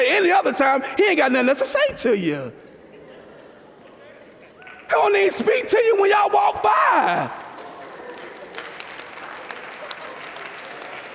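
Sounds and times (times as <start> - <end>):
speech: 0.0 - 2.7, 4.9 - 7.4
audience clapping: 7.1 - 11.1.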